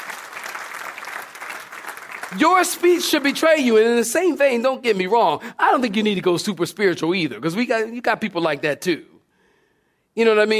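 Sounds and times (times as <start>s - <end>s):
crowd clapping: 0.0s - 3.6s
speech: 2.3s - 9.2s, 10.2s - 10.5s.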